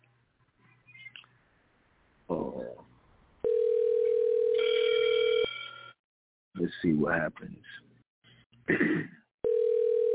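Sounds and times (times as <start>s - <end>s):
telephone being dialed: 3.4s - 5.5s, 9.4s - 10.1s
speech: 7.0s - 7.9s, 8.7s - 9.2s.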